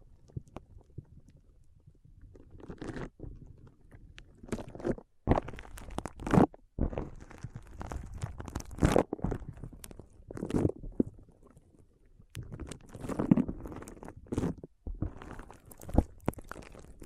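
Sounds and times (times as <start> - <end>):
foam being squeezed and rubbed, crackly rustling: 4.3 - 11.3, 12.4 - 17.0.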